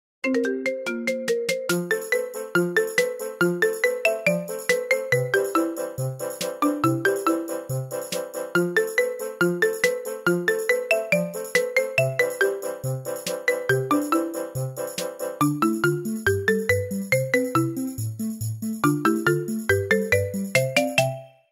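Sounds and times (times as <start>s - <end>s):
marimba ringtone: 0.2s - 21.5s.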